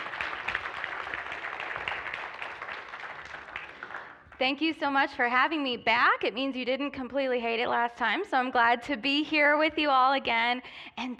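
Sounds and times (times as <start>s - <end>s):
audience applause welcoming a speaker at a Sunday gathering: 0.0s - 4.4s
speech: 4.4s - 11.1s.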